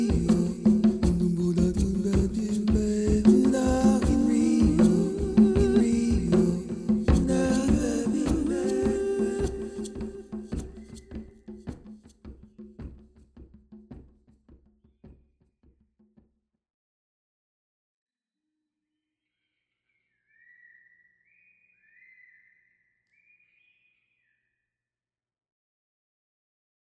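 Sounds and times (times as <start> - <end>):
chanting: 0.0 - 11.0.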